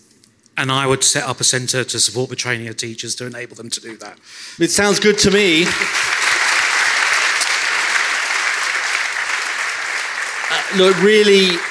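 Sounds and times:
speech: 0:00.6 - 0:06.1, 0:10.8 - 0:11.6
audience applause: 0:05.2 - 0:11.6.

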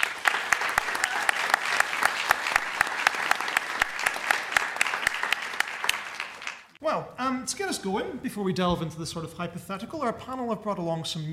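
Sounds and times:
audience applause: 0:00.0 - 0:06.8
speech: 0:06.9 - 0:11.3.

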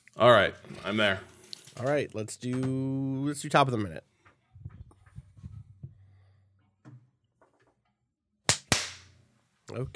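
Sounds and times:
speech: 0:00.2 - 0:04.1, 0:09.7 - 0:09.9
hand claps: 0:08.5 - 0:09.1.

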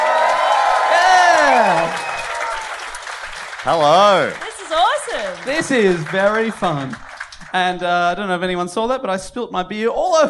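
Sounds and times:
whoops and gliding shouts: 0:00.0 - 0:02.8
live audience at the Wardrobe clapping: 0:00.0 - 0:08.6
speech: 0:03.6 - 0:10.2.

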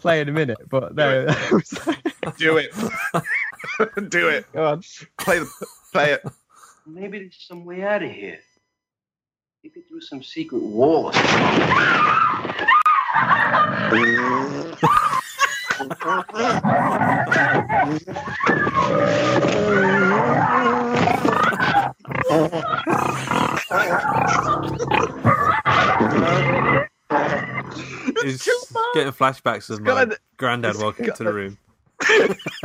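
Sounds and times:
speech: 0:00.0 - 0:08.5, 0:09.6 - 0:15.2, 0:15.8 - 0:21.4, 0:22.2 - 0:32.6
laughter: 0:01.0 - 0:04.5, 0:05.2 - 0:06.8, 0:12.6 - 0:26.7, 0:32.0 - 0:32.6
hungry video game monsters growling: 0:12.9 - 0:28.8
belly rumbling noise from video game monsters: 0:13.2 - 0:15.1, 0:15.8 - 0:28.0.

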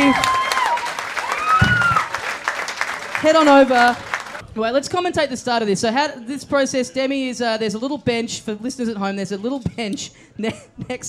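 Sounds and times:
audience applause for tattooers from East Brunswick Tattoos: 0:00.0 - 0:04.4
speech: 0:03.2 - 0:11.0.

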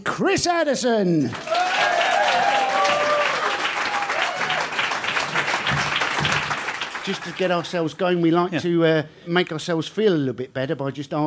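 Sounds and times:
speech: 0:00.1 - 0:01.8, 0:07.1 - 0:11.2
audience applause welcoming a panel to the stage at a live event: 0:01.2 - 0:08.0.

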